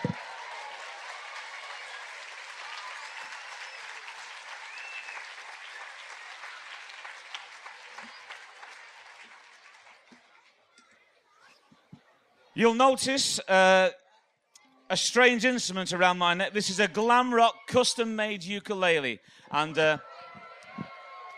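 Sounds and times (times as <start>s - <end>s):
large audience applause: 0.0s - 10.4s
speech: 12.6s - 14.0s, 14.9s - 20.1s.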